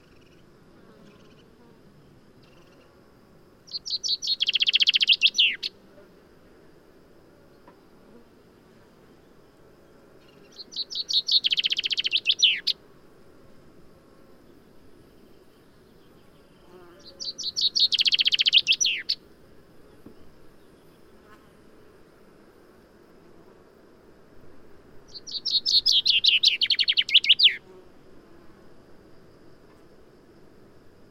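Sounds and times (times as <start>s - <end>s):
common chaffinch song: 3.6s - 5.8s, 10.2s - 12.8s, 15.2s - 19.3s, 25.0s - 27.7s.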